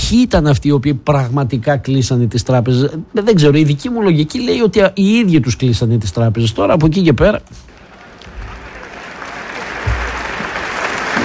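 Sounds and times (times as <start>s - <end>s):
speech: 0.1s - 7.7s
audience applause: 7.7s - 11.2s.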